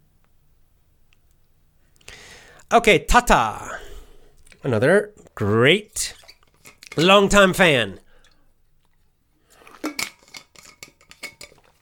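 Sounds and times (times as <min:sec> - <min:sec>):
speech: 0:02.7 - 0:03.7, 0:04.6 - 0:06.2, 0:07.0 - 0:08.0
glass clinking while water is poured and drunk: 0:09.8 - 0:11.7.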